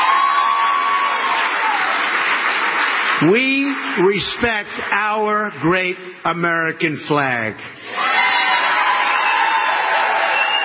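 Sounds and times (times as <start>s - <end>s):
large crowd cheering: 0.0s - 4.2s, 7.8s - 10.6s
speech: 3.2s - 8.2s.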